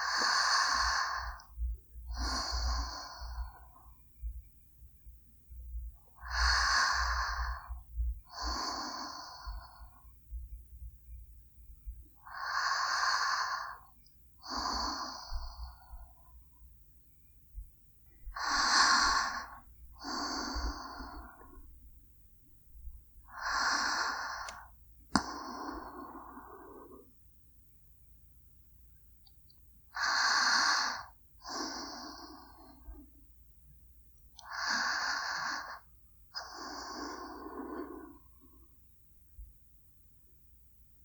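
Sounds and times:
sleeping breaths: 0:00.0 - 0:03.9, 0:06.2 - 0:10.0, 0:12.2 - 0:16.2, 0:18.3 - 0:21.7, 0:23.2 - 0:27.1, 0:29.9 - 0:33.1, 0:34.4 - 0:38.7.

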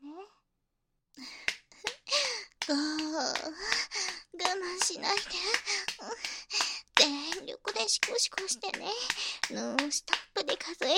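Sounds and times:
hand claps: 0:01.2 - 0:10.9
speech: 0:02.7 - 0:03.8, 0:04.6 - 0:06.6, 0:07.9 - 0:10.9.

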